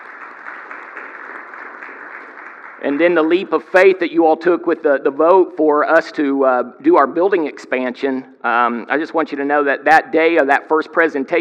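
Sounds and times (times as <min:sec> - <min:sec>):
audience applause: 0:00.0 - 0:04.0
speech: 0:02.8 - 0:11.3.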